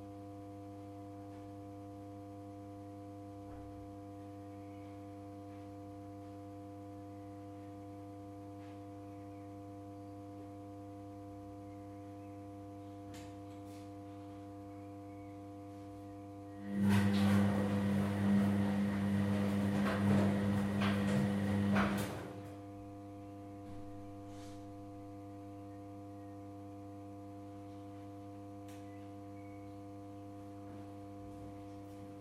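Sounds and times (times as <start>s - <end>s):
washing machine: 16.5s - 22.9s.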